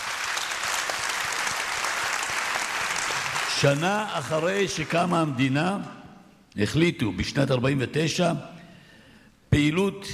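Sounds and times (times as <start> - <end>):
audience applause: 0.0 - 5.4
speech: 3.6 - 6.0, 6.6 - 8.5, 9.6 - 10.1.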